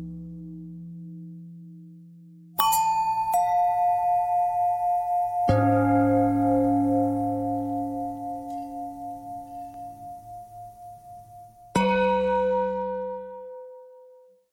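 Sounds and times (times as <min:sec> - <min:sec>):
long bell ringing: 0:02.6 - 0:13.3.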